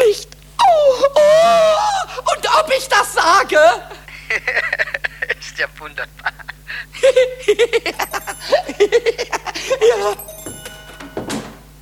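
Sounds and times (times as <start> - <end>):
laughter: 1.1 - 10.2
telephone ringing: 7.8 - 11.8.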